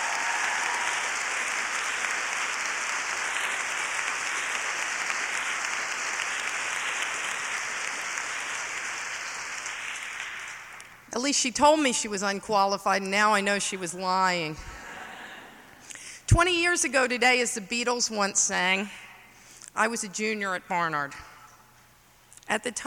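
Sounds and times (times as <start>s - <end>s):
audience applause: 0.0s - 10.9s
speech: 11.2s - 14.8s, 16.3s - 19.0s, 19.8s - 21.3s, 22.5s - 22.8s.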